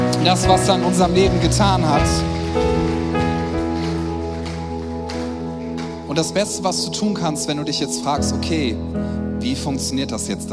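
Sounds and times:
crowd applauding: 0.1 - 7.2
speech: 0.2 - 3.0, 6.2 - 10.5.

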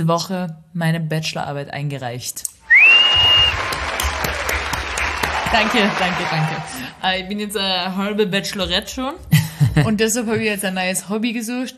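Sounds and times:
speech: 0.0 - 3.3, 5.5 - 11.7
applause sound effect: 2.8 - 7.0.

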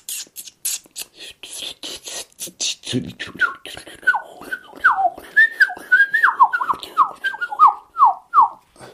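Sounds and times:
person whistling an imitation of blackcap song: 3.4 - 8.6.

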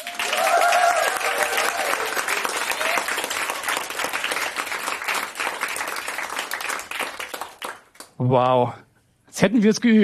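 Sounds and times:
live audience cheering and shouting: 0.0 - 3.1
live audience clapping: 0.0 - 8.3
speech: 8.2 - 10.0.

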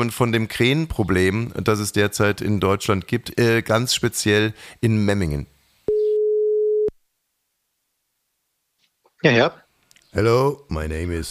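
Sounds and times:
speech: 0.0 - 5.6, 9.2 - 11.2
telephone line tone before a call: 5.9 - 6.9.

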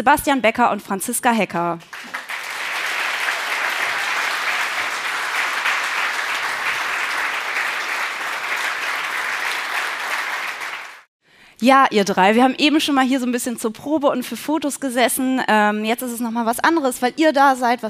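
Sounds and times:
speech: 0.0 - 2.2, 11.6 - 17.8
live audience applause: 1.8 - 11.1.

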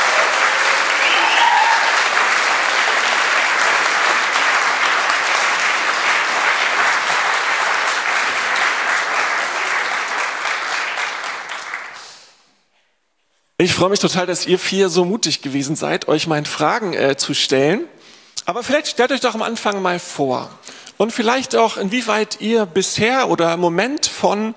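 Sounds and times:
audience applause: 0.0 - 12.1
speech: 13.6 - 24.5.

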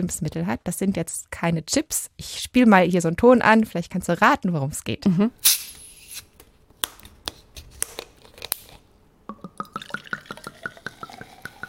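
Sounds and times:
speech: 0.0 - 5.8
bottle being opened: 5.4 - 6.3, 8.0 - 11.6
carbonated drink poured into glass: 9.3 - 11.6.

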